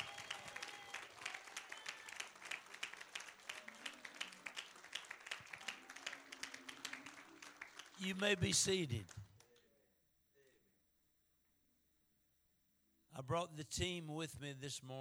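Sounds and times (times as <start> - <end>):
audience clapping: 0.0 - 9.6
speech: 8.0 - 9.2, 13.2 - 14.9.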